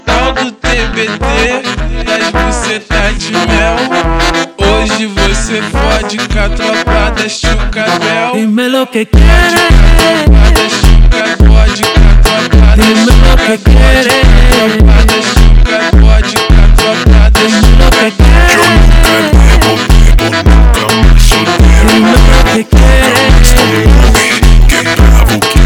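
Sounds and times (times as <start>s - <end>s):
slowed funk music: 0.0s - 8.2s, 9.2s - 25.6s.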